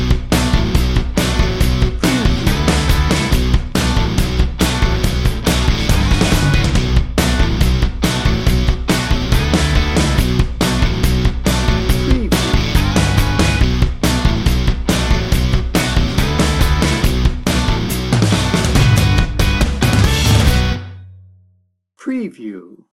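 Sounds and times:
backing track without lead guitar: 0:00.0 - 0:21.3.

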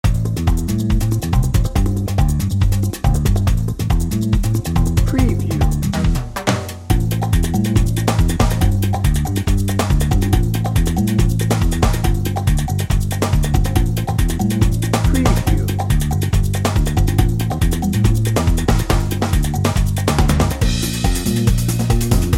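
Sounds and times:
salsa merengue drum and bass music: 0:00.0 - 0:22.3.

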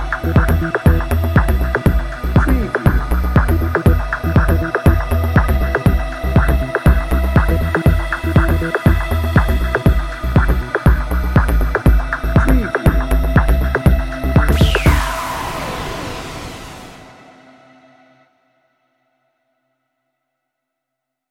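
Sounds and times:
bouncy dreamy music bed: 0:00.0 - 0:15.2.

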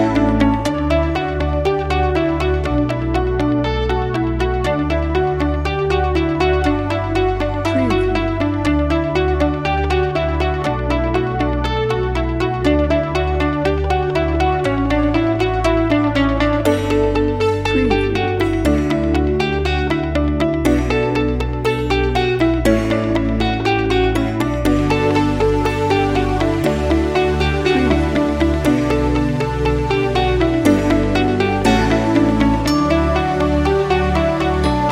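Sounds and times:
upbeat positive music without drums: 0:00.0 - 0:34.9.

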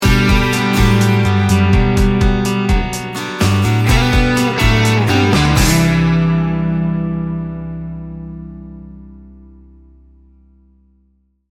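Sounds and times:
americana soft rock sting bumper: 0:00.0 - 0:08.6.

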